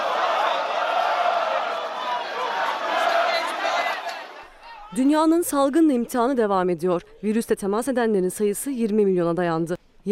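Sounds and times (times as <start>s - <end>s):
thousands of football fans shouting and chanting in the streets of Brazil: 0.0s - 5.0s
speech: 5.0s - 10.1s.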